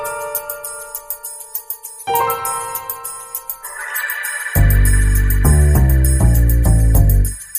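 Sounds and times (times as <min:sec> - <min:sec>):
industrial sound: 0:02.1 - 0:07.5.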